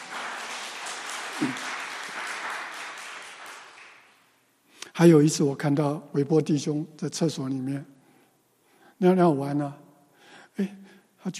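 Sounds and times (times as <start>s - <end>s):
audience clapping applause: 0.0s - 4.4s
speech: 1.4s - 1.7s, 5.0s - 7.9s, 9.0s - 9.8s, 10.6s - 11.3s.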